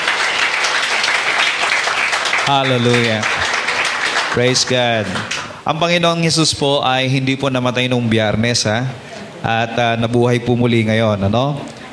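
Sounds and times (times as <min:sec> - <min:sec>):
church congregation applauding during a worship service: 0:00.0 - 0:05.6
speech: 0:02.5 - 0:03.3, 0:04.4 - 0:11.8.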